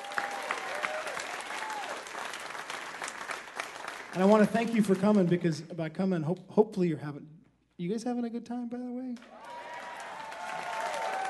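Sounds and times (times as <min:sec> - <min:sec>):
audience clapping: 0:00.0 - 0:05.6, 0:09.2 - 0:11.2
speech: 0:04.2 - 0:09.4.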